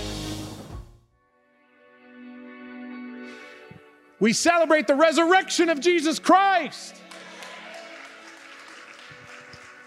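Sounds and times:
speech: 4.2 - 7.0
audience clapping: 6.8 - 9.8.

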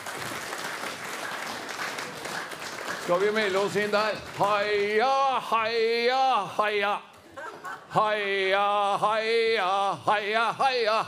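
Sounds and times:
audience applause: 0.0 - 5.7
speech: 3.1 - 7.1, 7.9 - 11.0
laughter: 7.2 - 9.0.

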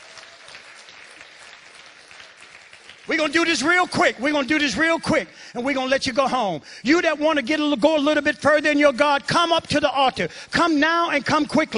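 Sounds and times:
audience applause: 0.0 - 3.3
speech: 3.1 - 11.7.

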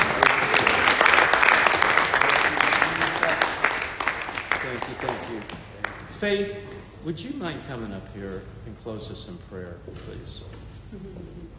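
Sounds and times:
audience applause: 0.0 - 6.1
speech: 6.2 - 11.5.

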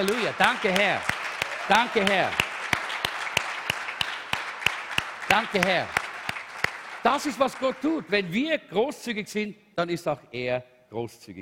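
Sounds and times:
speech: 0.0 - 2.4, 5.3 - 6.0, 7.0 - 11.3
audience applause: 0.0 - 8.3.

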